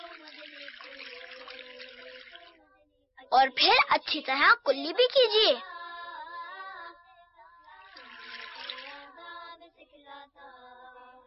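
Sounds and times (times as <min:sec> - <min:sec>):
water running from a tap while both hands are rinsed: 0:00.0 - 0:02.5, 0:07.9 - 0:09.1
speech: 0:03.3 - 0:05.7.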